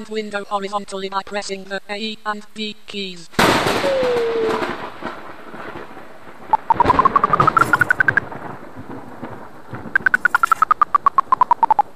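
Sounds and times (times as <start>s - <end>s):
speech: 0.0s - 5.0s
clicking tone in audio game: 6.6s - 8.2s, 10.0s - 11.8s.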